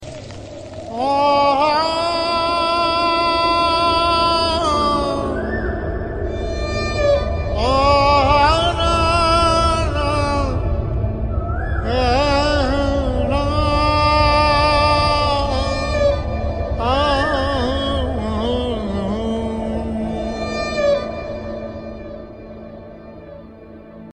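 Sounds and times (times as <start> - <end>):
sad tone: 0.0 - 24.1.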